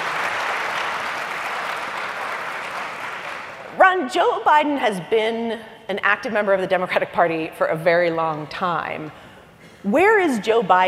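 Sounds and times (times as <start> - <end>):
audience applause: 0.0 - 3.7
speech: 4.0 - 10.8.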